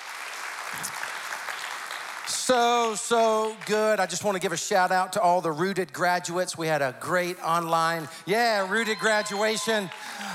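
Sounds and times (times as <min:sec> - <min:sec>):
church congregation clapping to welcome people from several campuses: 0:00.0 - 0:04.4, 0:08.6 - 0:10.3
speech: 0:00.7 - 0:01.1, 0:02.5 - 0:10.3.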